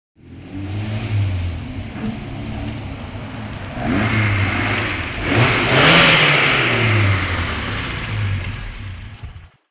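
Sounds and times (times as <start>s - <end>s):
Alfa Romeo car engine stopping: 0.2s - 9.6s.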